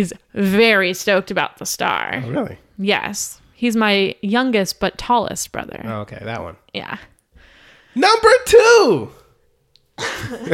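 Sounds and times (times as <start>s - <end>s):
speech: 0.0s - 7.1s, 8.0s - 9.2s, 10.0s - 10.5s
person coughing: 10.0s - 10.5s.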